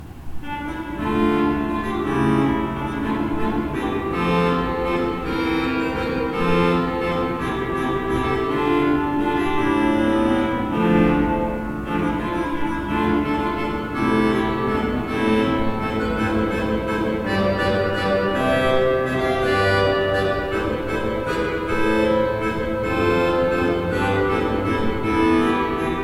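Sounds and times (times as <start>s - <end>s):
used Beckerath pipe organ: 0.4s - 26.0s.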